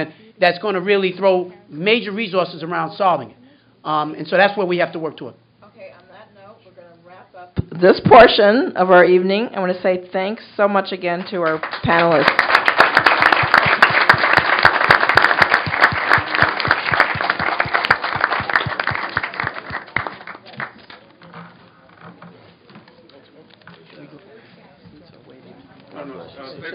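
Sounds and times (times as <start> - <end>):
speech: 0.0 - 5.4, 7.4 - 12.5
audience applause: 11.4 - 21.3.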